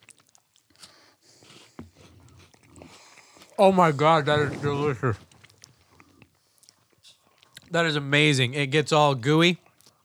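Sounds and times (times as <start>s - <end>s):
chewing a Tim Tam biscuit after a Tim Tam Slam with tea: 0.0s - 8.0s, 9.6s - 10.0s
speech: 3.6s - 5.3s, 7.7s - 9.6s
low rustling: 3.6s - 5.4s.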